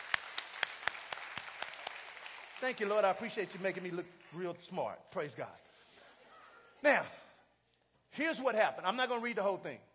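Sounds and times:
audience hand clapping: 0.0 - 4.7
speech: 2.6 - 5.7, 6.8 - 7.2, 8.1 - 9.9.

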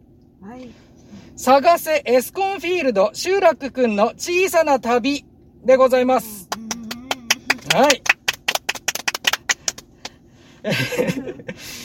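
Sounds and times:
speech: 0.4 - 6.4, 7.7 - 8.1, 10.6 - 11.8
applause by three people: 6.5 - 10.2
laughter: 10.6 - 11.6.

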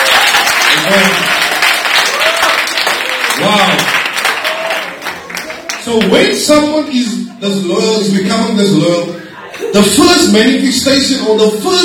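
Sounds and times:
audience clapping hands: 0.0 - 6.4
speech: 0.9 - 1.4, 5.9 - 11.8.

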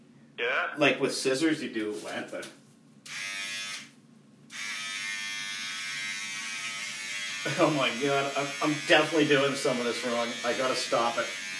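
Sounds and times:
speech: 0.4 - 2.6, 7.4 - 11.4
electric hair clippers buzzing: 3.1 - 11.5.

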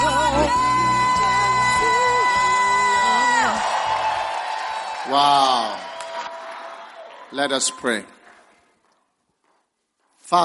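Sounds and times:
church congregation cheering with whoops, yells and shouts: 0.0 - 8.2
speech: 5.1 - 5.8, 7.3 - 8.2, 10.3 - 10.4.

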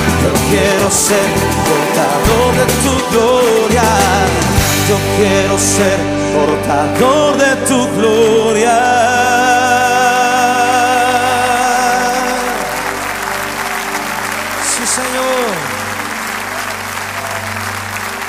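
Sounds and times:
audience applause: 0.0 - 4.5, 10.6 - 18.2
speech: 0.5 - 9.5.

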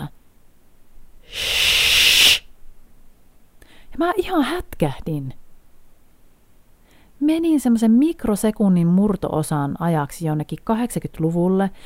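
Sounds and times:
hissing shush whispered into ear: 1.3 - 2.5
speech: 4.0 - 5.4, 7.2 - 11.8.

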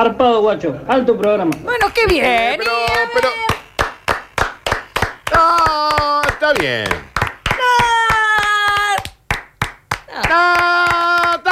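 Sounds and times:
speech: 0.0 - 3.6, 5.3 - 7.0
applause: 2.8 - 11.5.

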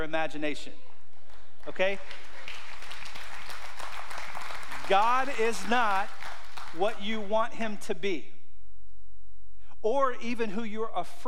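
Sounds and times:
speech: 0.0 - 0.9, 1.6 - 2.4, 4.9 - 8.3, 9.8 - 11.2
audience clapping: 1.2 - 7.1.

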